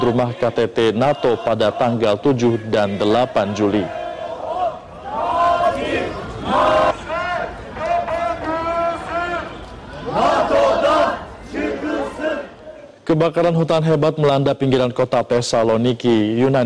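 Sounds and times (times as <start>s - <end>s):
speech: 0.0s - 4.0s, 13.1s - 16.6s
protest crowd chanting: 0.0s - 13.0s.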